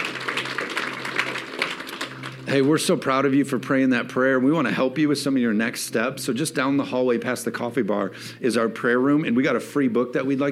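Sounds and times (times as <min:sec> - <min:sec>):
audience applause: 0:00.0 - 0:02.7
speech: 0:02.5 - 0:10.5.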